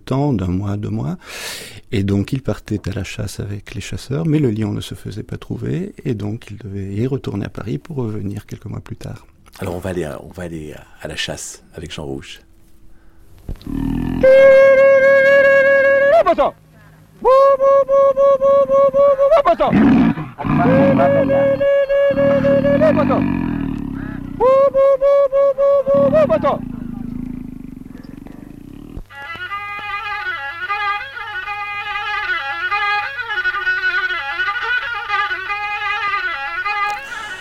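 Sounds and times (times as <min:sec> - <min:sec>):
speech: 0:00.1 - 0:12.4, 0:13.5 - 0:15.4, 0:16.2 - 0:16.6, 0:17.2 - 0:23.5, 0:24.4 - 0:26.7
violin playing before a hunt: 0:20.6 - 0:23.2, 0:29.1 - 0:37.4.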